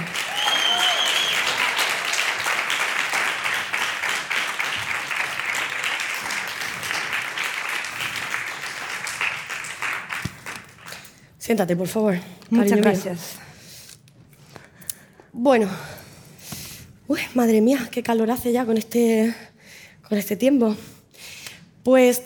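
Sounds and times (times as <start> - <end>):
audience applause: 0.0 - 11.0
speech: 11.5 - 13.4, 15.4 - 15.9, 17.1 - 19.5, 20.1 - 21.0, 21.8 - 22.2.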